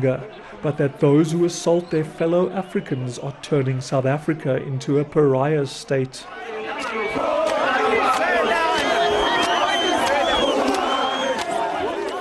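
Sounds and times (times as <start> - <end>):
speech: 0.0 - 7.4
men screaming: 6.4 - 12.1.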